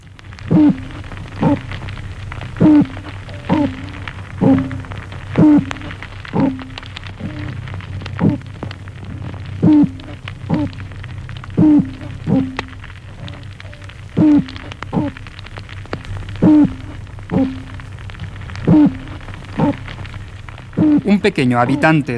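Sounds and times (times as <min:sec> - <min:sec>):
underwater rumble and hiss: 0:00.0 - 0:22.1
speech: 0:00.5 - 0:00.8, 0:21.1 - 0:22.1
toadfish bark and hoot calls: 0:00.5 - 0:01.7, 0:02.6 - 0:07.6, 0:08.2 - 0:08.5, 0:09.6 - 0:10.8, 0:11.6 - 0:15.2, 0:16.4 - 0:17.8, 0:18.7 - 0:19.8, 0:20.8 - 0:22.1.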